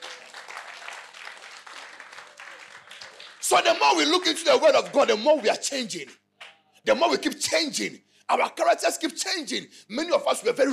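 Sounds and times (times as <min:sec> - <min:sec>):
crowd applauding steadily: 0:00.0 - 0:06.6
speech: 0:03.5 - 0:06.2, 0:06.8 - 0:10.7.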